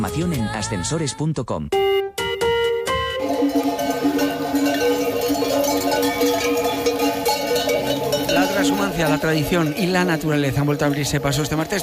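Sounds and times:
speech: 0.0s - 2.2s, 8.6s - 11.8s
bells of a passing sheep flock clanking: 3.2s - 11.8s.

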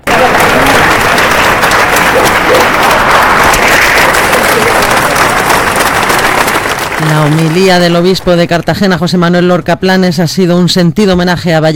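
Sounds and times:
crowd applauding at a funeral procession: 0.0s - 9.1s
speech: 7.1s - 11.7s.

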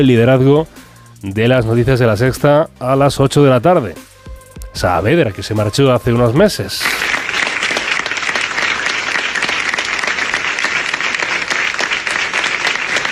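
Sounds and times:
speech: 0.0s - 4.1s, 4.8s - 7.1s
applause in a newsroom: 6.8s - 13.1s.

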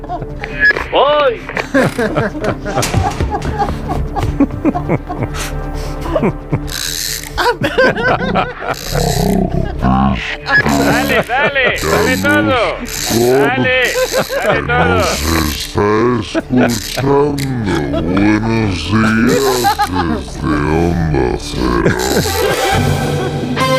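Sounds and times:
speech: 0.0s - 3.8s, 6.2s - 6.9s, 7.8s - 23.5s
laughter: 0.0s - 23.7s
person straining vocally: 6.0s - 22.8s
stuck film projector being wound up with rattling ratchet: 6.6s - 7.4s, 8.7s - 9.4s, 10.8s - 15.8s, 19.0s - 19.9s.

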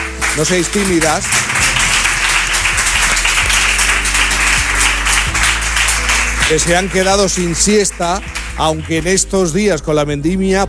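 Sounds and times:
live audience applause: 0.0s - 9.3s
speech: 0.4s - 1.7s, 6.5s - 10.6s.

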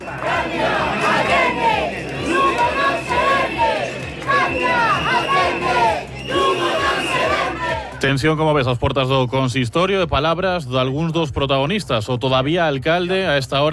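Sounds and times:
crowd of protesters shouting chants outside town hall: 0.0s - 8.0s
speech: 8.1s - 13.7s.

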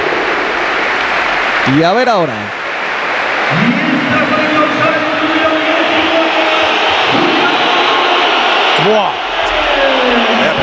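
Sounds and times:
stadium crowd ovation at the Metropolitano: 0.0s - 10.6s
speech: 1.7s - 2.6s, 3.5s - 4.3s, 8.8s - 9.2s.

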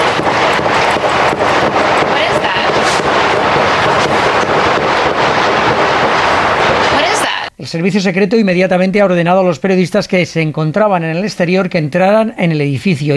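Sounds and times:
gunshots: 0.0s - 7.5s
loud constant wind-like roar: 0.0s - 7.5s
speech: 7.7s - 13.1s.

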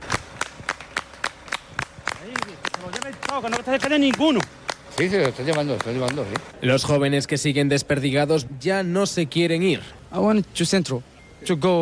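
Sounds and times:
crowd clapping for soldiers: 0.0s - 6.5s
speech: 2.2s - 11.8s.

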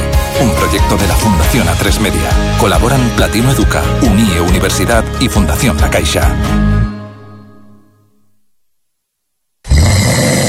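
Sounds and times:
speech: 0.4s - 6.7s
snoring: 9.7s - 10.4s.

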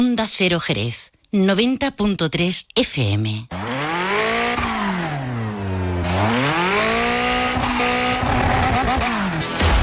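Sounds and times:
speech: 0.1s - 3.7s
motocross motorcycle engines revving at a freestyle motocross show: 3.5s - 9.6s.

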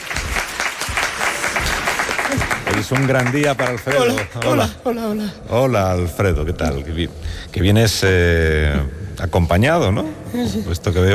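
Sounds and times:
audience applause: 0.0s - 4.8s
speech: 2.8s - 11.1s.

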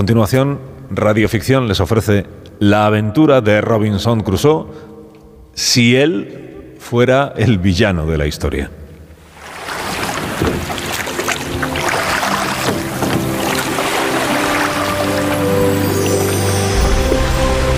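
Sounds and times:
speech: 0.0s - 4.9s, 5.6s - 8.8s
boat being rowed with oars through water: 9.2s - 17.6s.

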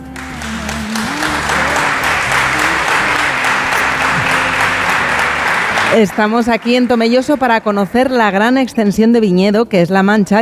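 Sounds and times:
loud audience applause: 0.0s - 8.6s
laughter: 0.4s - 8.3s
speech: 5.9s - 10.4s.

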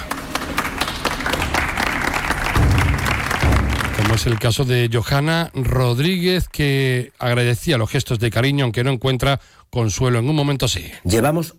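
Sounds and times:
crowd applause: 0.0s - 4.7s
speech: 4.2s - 11.5s.

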